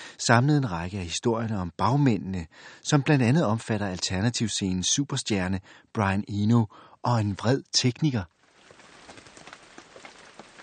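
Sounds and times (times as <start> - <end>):
speech: 0.2 - 8.4
rain falling as a faint steady hiss of patter: 7.1 - 10.6.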